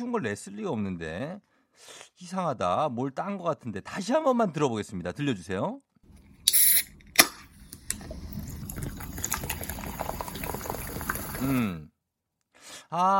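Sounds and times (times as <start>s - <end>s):
speech: 0.0s - 5.9s, 11.4s - 11.8s, 12.9s - 13.1s
drink opening with a hiss and crack: 6.1s - 11.7s.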